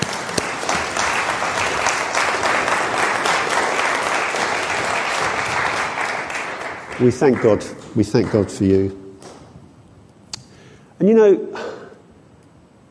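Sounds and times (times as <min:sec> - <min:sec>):
audience clapping: 0:00.0 - 0:08.9
speech: 0:07.0 - 0:09.0, 0:11.0 - 0:11.6.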